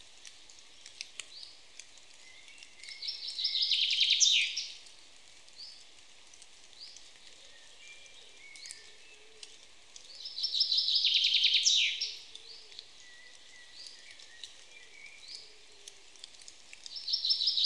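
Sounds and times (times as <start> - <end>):
common chaffinch Fringilla coelebs singing: 1.2 - 4.8, 6.8 - 15.7, 16.8 - 17.6.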